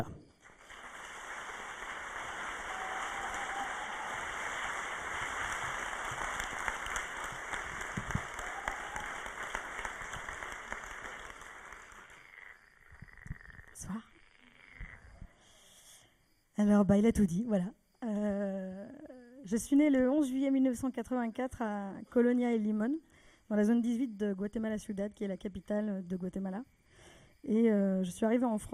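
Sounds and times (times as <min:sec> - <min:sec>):
audience applause: 0:00.5 - 0:12.5
speech: 0:16.6 - 0:17.8, 0:19.5 - 0:26.8, 0:27.4 - 0:28.7.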